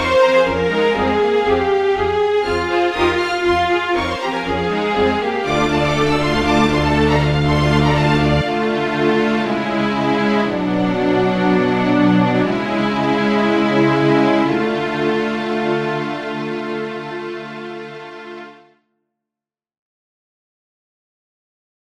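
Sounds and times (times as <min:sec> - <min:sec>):
outro music: 0:00.0 - 0:16.9.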